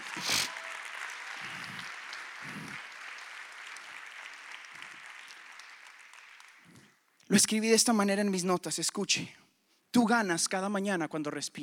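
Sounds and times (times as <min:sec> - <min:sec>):
audience applause: 0:00.0 - 0:06.8
speech: 0:07.3 - 0:09.4, 0:10.0 - 0:11.6.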